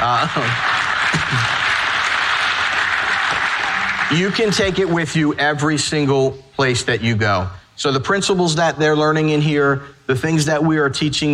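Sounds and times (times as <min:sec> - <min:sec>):
speech: 0:00.0 - 0:01.6, 0:04.1 - 0:11.3
audience applause: 0:00.0 - 0:05.2.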